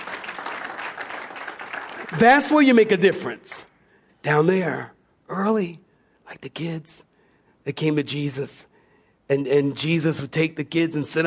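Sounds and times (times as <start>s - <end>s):
audience clapping: 0.0s - 3.7s
speech: 2.1s - 8.7s, 9.3s - 11.2s.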